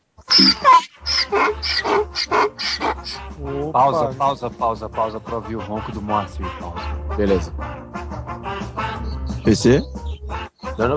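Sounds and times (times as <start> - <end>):
person imitating an owl call: 0.2 - 4.4
speech: 1.4 - 7.9, 9.5 - 10.0, 10.8 - 10.9.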